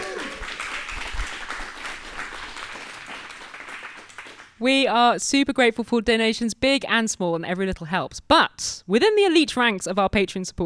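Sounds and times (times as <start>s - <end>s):
audience applause: 0.0s - 4.6s
speech: 4.6s - 10.6s.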